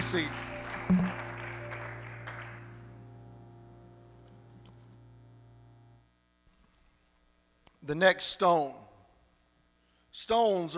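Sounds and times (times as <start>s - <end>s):
speech: 0.0s - 1.3s, 7.9s - 8.8s, 10.2s - 10.7s
audience clapping hands: 0.0s - 2.8s.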